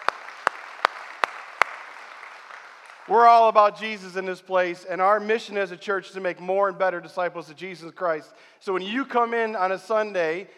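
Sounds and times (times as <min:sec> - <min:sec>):
church congregation clapping to welcome a guest: 0:00.0 - 0:03.8
speech: 0:03.1 - 0:10.5.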